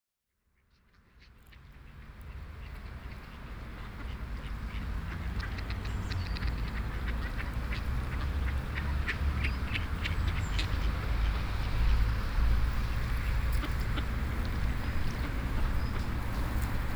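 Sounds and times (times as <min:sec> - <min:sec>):
ducks quacking on grass and in water: 0:03.0 - 0:11.8, 0:13.1 - 0:16.9.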